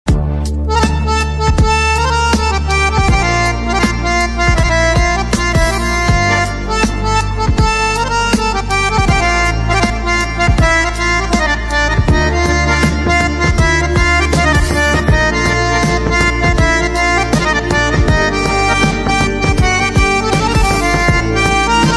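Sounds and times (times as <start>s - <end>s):
harmonium: 0.1s - 21.9s.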